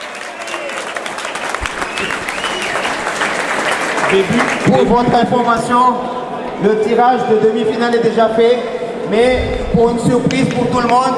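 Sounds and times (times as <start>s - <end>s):
audience applause for a team qualified for the final four: 0.0s - 5.6s
crowd noise: 0.0s - 11.1s
speech: 4.1s - 11.1s.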